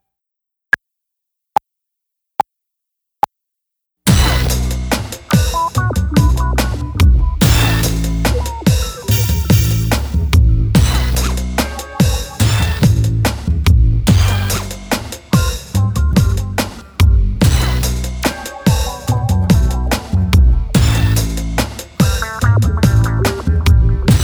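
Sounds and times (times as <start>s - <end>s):
eighth note groove without guide flute: 4.1s - 24.2s.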